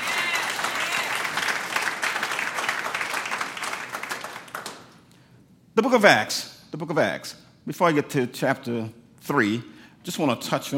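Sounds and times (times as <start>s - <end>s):
audience clapping hands: 0.0s - 5.2s
speech: 5.8s - 10.7s.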